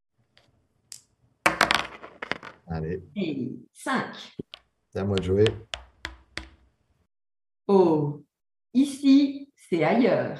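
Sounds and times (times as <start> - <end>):
dice rolled onto a hard surface: 0.9 - 2.6
speech: 2.7 - 5.7, 7.7 - 8.2, 8.8 - 10.3.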